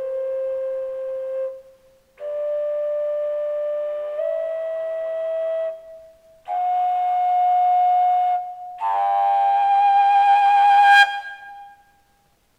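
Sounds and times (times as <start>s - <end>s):
huge fujara flute playing equal tempered G in Slovakia: 0.0s - 12.2s.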